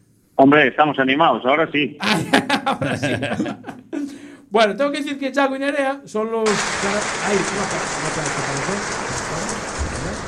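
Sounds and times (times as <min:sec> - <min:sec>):
speech: 0:00.4 - 0:09.5
laughter: 0:02.0 - 0:04.3, 0:06.5 - 0:10.2
spectators applauding at a car rally in Galicia: 0:06.5 - 0:10.2.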